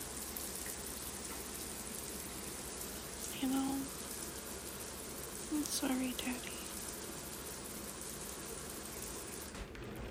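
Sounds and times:
shower running: 0.0 - 10.0
speech: 3.4 - 4.0, 5.5 - 6.6.

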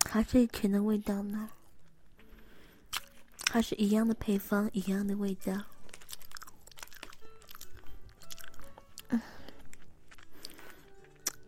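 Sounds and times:
speech: 0.1 - 1.6, 3.5 - 5.7, 9.1 - 9.3
crunchy sachima pastry being eaten: 2.9 - 3.6, 5.6 - 11.4.

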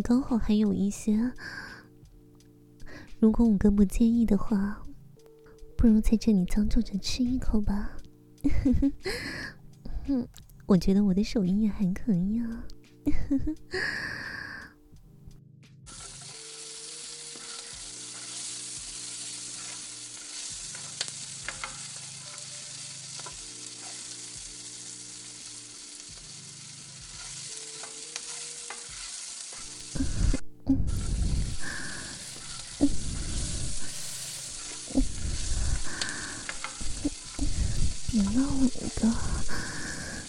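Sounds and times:
speech: 0.0 - 1.8, 3.2 - 4.8, 5.8 - 14.3
stirring scrapes and clattering: 15.9 - 24.9, 26.2 - 29.8, 32.1 - 39.0
food frying in a kitchen: 15.9 - 40.2.

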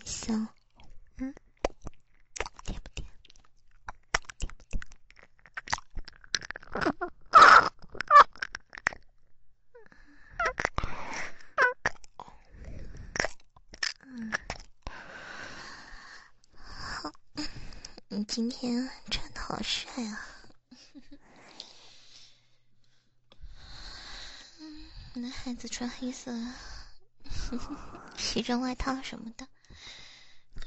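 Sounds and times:
speech: 0.3 - 0.6, 1.2 - 1.4, 18.3 - 20.3, 25.8 - 26.8, 27.5 - 29.6
eating a mint lemon flavoured candy, sucking and crunching: 0.6 - 9.1, 10.4 - 15.0.

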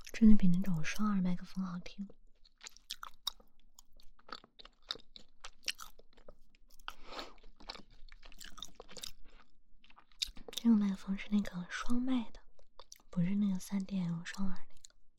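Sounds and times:
speech: 0.2 - 2.2, 10.6 - 12.4, 13.2 - 14.7
crunchy bites and chewing of soft pumpkin toast: 2.1 - 10.7, 12.6 - 13.2.

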